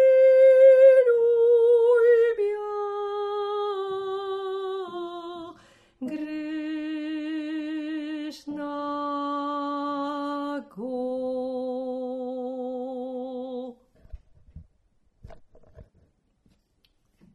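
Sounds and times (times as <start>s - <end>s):
soprano singing: 0.0s - 13.8s.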